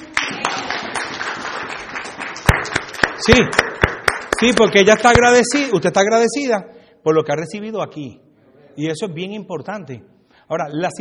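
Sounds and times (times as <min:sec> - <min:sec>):
crowd applause: 0:00.0 - 0:04.6
loud single clap: 0:00.2 - 0:05.6
speech: 0:03.2 - 0:03.7, 0:04.4 - 0:11.0.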